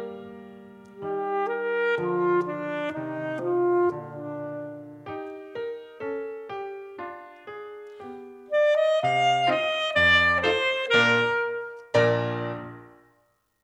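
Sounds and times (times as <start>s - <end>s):
saxophone: 0.0s - 5.4s, 8.4s - 12.8s.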